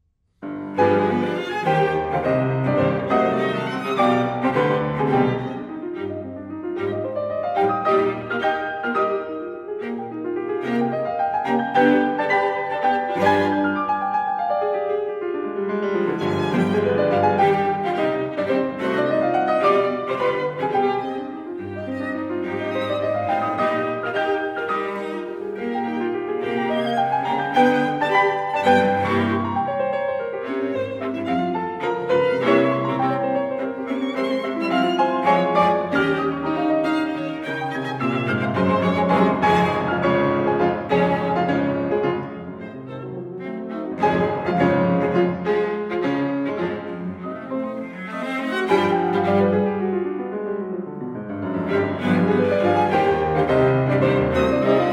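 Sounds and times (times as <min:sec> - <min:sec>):
piano quartet: 0:00.4 - 0:54.9.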